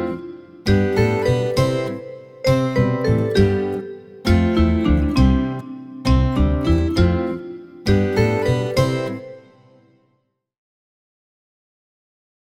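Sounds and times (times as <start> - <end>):
instrumental music: 0.0 - 10.0.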